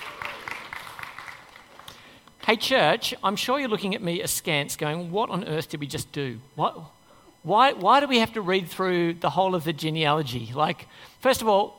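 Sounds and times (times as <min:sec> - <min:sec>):
audience applause: 0:00.0 - 0:01.9
speech: 0:02.5 - 0:11.7.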